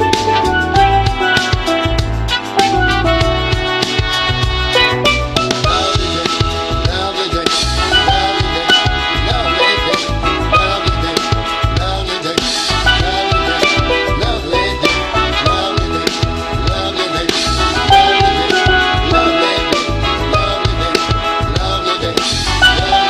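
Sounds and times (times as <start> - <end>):
steel drum playing R and B: 0.0 - 7.0, 7.7 - 11.9, 12.7 - 23.0.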